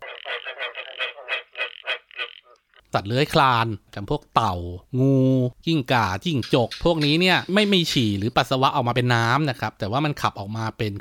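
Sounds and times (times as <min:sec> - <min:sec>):
frog croaking: 0:00.0 - 0:02.9
speech: 0:02.9 - 0:10.9.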